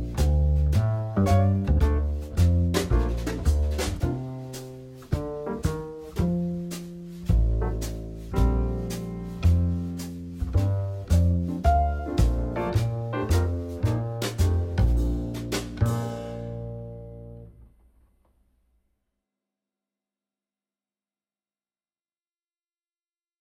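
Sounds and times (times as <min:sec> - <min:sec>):
two-five-one play-along backing music: 0:00.0 - 0:17.4.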